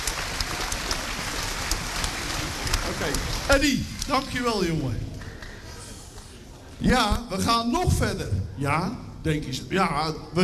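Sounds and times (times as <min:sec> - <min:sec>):
crowd applause: 0:00.0 - 0:04.0
speech: 0:03.0 - 0:05.1, 0:06.8 - 0:10.4.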